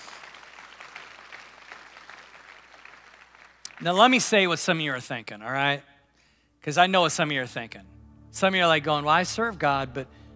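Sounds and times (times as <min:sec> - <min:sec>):
audience applause: 0:00.0 - 0:03.8
speech: 0:03.8 - 0:05.9, 0:06.6 - 0:10.2.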